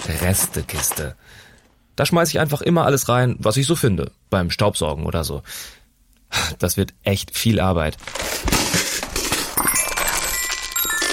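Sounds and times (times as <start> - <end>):
speech: 0.1 - 9.0
toy metallophone tumbling out: 9.6 - 11.1.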